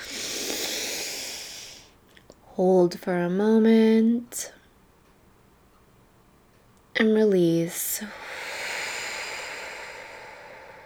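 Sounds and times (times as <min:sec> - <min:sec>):
deep breath in during a guided meditation: 0:00.0 - 0:01.9, 0:08.1 - 0:10.8
speech: 0:02.6 - 0:04.6, 0:07.0 - 0:08.2.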